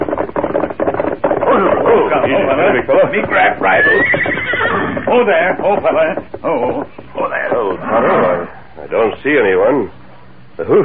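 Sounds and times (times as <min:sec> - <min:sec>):
horse whinnying: 0:00.1 - 0:08.8
speech: 0:01.5 - 0:10.0, 0:10.6 - 0:10.8.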